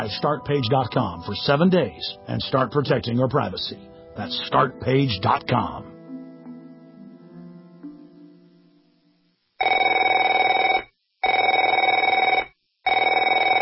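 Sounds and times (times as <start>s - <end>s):
speech: 0.0s - 5.9s
quiet tonal music: 0.0s - 9.4s
telephone ringing: 9.6s - 13.5s.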